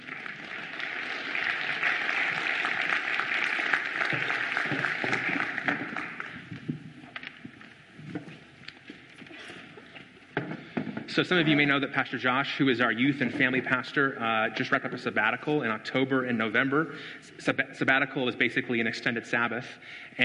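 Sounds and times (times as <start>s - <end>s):
audience applause: 0.0s - 6.8s
speech: 11.2s - 20.2s.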